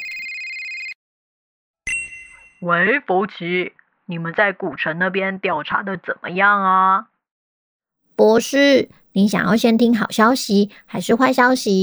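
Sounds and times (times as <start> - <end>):
mobile phone ringing: 0.0 - 1.0
speech: 2.6 - 7.1, 8.2 - 11.8.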